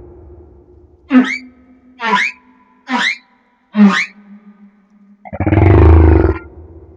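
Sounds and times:
humpback whale song off Madagascar: 0:01.1 - 0:06.4.

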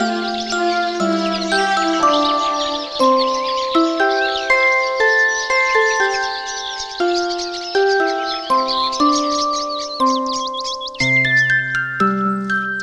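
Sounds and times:
bird chirps and twitters: 0:00.0 - 0:12.8.

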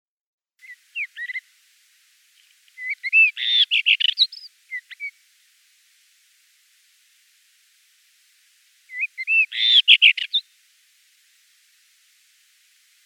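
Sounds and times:
common rock thrush singing: 0:00.6 - 0:01.6, 0:02.3 - 0:05.2, 0:08.8 - 0:10.6.

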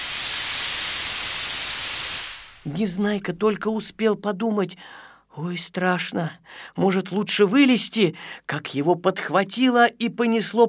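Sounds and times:
air hissing out of an inflated balloon through an opened valve and hose: 0:00.0 - 0:02.6
speech: 0:02.6 - 0:10.6.

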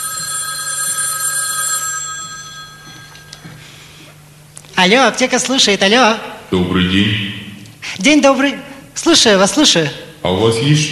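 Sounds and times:
telephone ringing calling a pharmacy: 0:00.0 - 0:03.6
speech: 0:04.8 - 0:07.4, 0:08.0 - 0:10.9.

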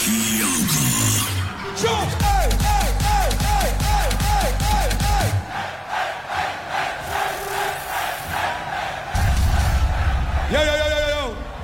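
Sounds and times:
pounding electronic dance music with swooping synth riff: 0:00.0 - 0:11.4
festival crowd screaming and cheering: 0:00.0 - 0:11.6.

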